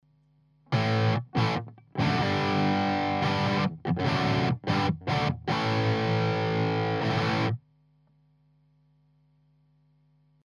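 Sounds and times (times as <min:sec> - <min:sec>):
Stratocaster electric guitar through EHX 5150 clean overdrive: 0:00.7 - 0:07.6.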